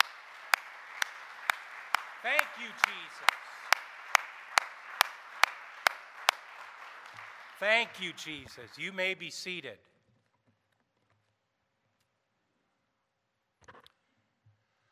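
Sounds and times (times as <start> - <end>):
audience hand clapping: 0.0 - 9.5
speech: 2.2 - 3.5, 7.6 - 9.9.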